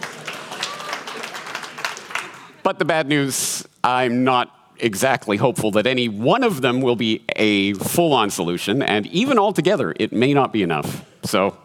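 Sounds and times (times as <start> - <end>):
crowd applause: 0.0 - 2.7
speech: 2.7 - 11.6.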